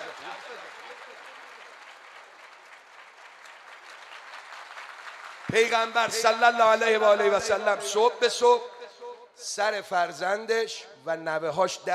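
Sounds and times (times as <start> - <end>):
audience clapping at a gathering: 0.0 - 7.2
speech: 5.5 - 8.7, 9.4 - 11.9.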